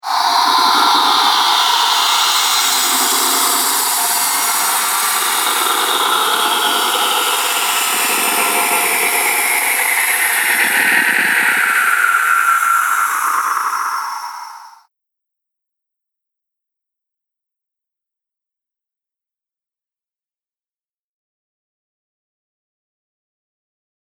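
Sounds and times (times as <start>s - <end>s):
frightening drone: 0.0s - 14.8s.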